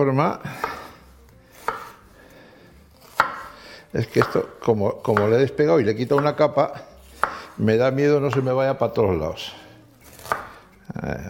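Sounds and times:
speech: 0.0s - 0.7s, 3.9s - 6.9s, 7.6s - 9.6s, 11.0s - 11.2s
knife chopping through food: 0.5s - 2.0s, 2.9s - 8.8s, 10.0s - 10.8s.

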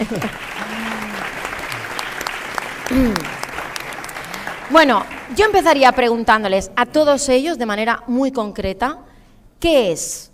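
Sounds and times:
audience applause: 0.0s - 5.8s
speech: 0.1s - 0.5s, 2.9s - 3.3s, 4.7s - 10.3s.

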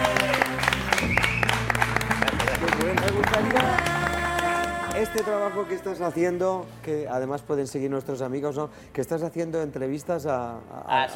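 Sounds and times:
audience applause: 0.0s - 5.2s
speech: 5.0s - 11.1s.

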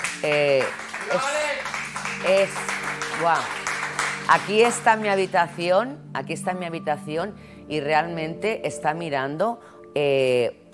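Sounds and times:
crowd applause: 0.0s - 5.5s
speech: 0.2s - 1.3s, 2.2s - 3.6s, 4.3s - 10.6s.

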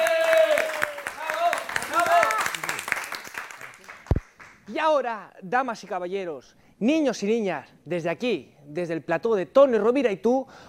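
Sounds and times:
loud cheering and whooping voices: 0.0s - 2.8s
audience applause: 0.0s - 4.6s
speech: 4.8s - 10.6s.

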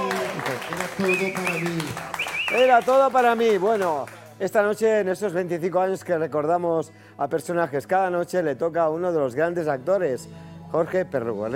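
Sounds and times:
audience clapping on a television tribute show: 0.0s - 4.7s
speech: 1.0s - 11.5s.

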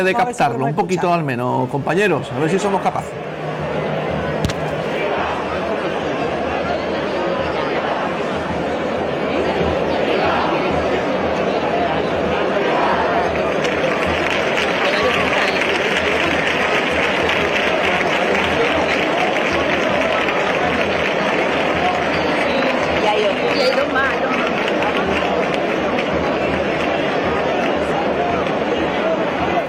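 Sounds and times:
speech: 0.0s - 3.4s
large crowd cheering: 1.8s - 29.6s
large crowd clapping: 12.3s - 29.6s.

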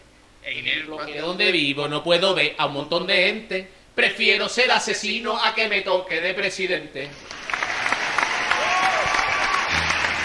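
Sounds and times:
speech: 0.5s - 7.4s
applause: 7.2s - 10.2s.

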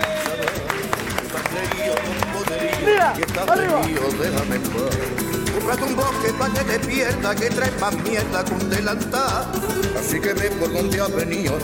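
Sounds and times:
audience applause: 0.0s - 8.1s
speech: 3.1s - 11.6s.

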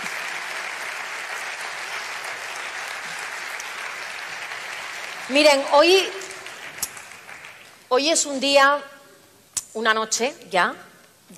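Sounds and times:
audience applause: 0.0s - 7.8s
speech: 5.3s - 6.2s, 7.9s - 8.9s, 9.8s - 11.3s.

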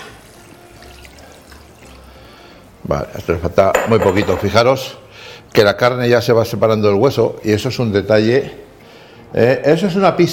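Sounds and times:
water poured into a pan of cooking chicken: 0.0s - 2.4s
speech: 2.8s - 8.6s, 9.3s - 10.3s.

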